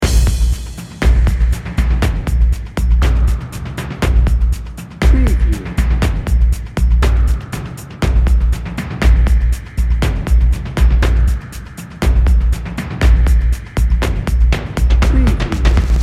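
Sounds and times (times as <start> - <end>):
cinematic emotional drum and bass loop: 0.0 - 16.0.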